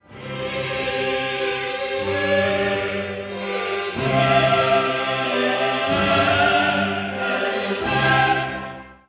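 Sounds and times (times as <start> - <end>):
choir singing: 0.0 - 9.0.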